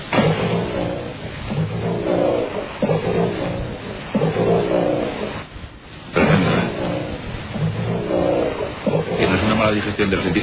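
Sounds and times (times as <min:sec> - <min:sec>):
recorded deep growling roars said to come from a lake serpent: 0:00.1 - 0:05.5, 0:06.2 - 0:09.8
speech: 0:09.7 - 0:10.4.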